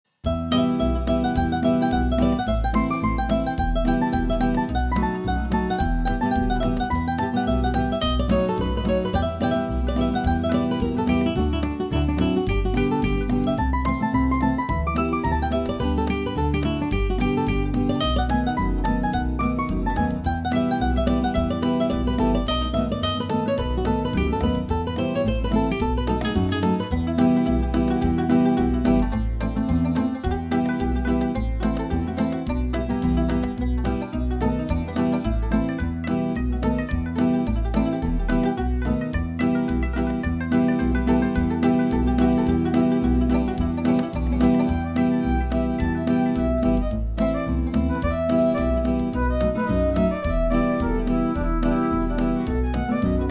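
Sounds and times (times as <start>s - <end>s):
bluegrass music: 0.2s - 53.2s.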